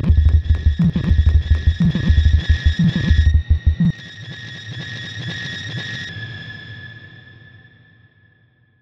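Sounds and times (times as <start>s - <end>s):
1 kHz stereo test tone: 0.0s - 3.9s.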